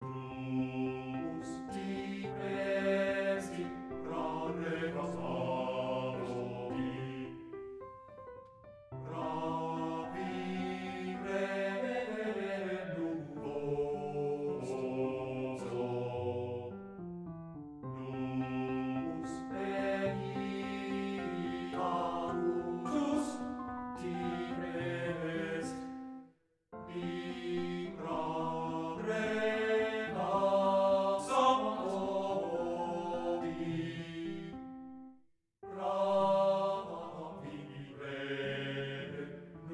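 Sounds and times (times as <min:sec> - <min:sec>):
art song for voice and piano: 0:00.0 - 0:39.7.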